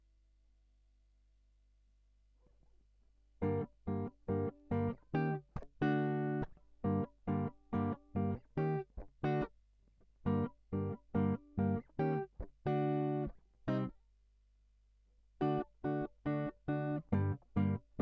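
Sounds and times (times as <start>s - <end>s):
guitar line: 3.4s - 9.5s, 10.2s - 13.9s, 15.4s - 18.0s.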